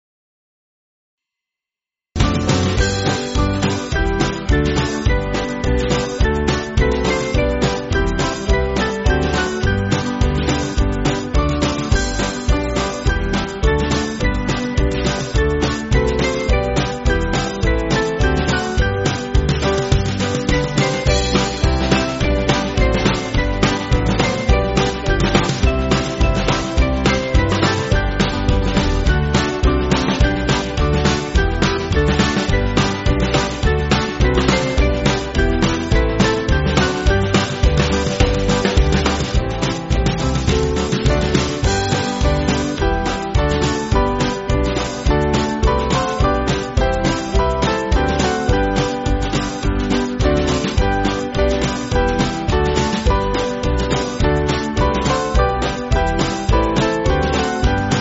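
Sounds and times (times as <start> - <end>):
church band backing music: 2.2 - 57.9.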